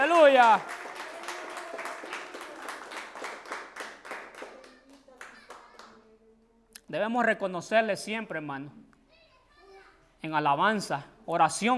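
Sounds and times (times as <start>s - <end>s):
audience clapping hands: 0.0s - 6.0s
speech: 0.2s - 0.8s, 6.9s - 8.9s, 10.2s - 11.7s.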